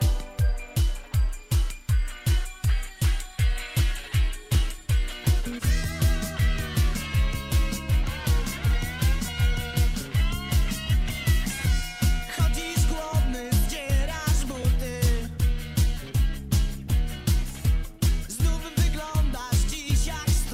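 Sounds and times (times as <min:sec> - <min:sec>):
rock metal music: 0:00.0 - 0:20.5.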